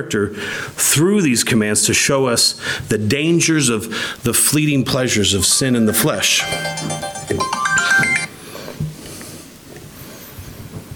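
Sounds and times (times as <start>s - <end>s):
speech: 0.0s - 8.1s
timer alarm going off: 5.9s - 8.4s.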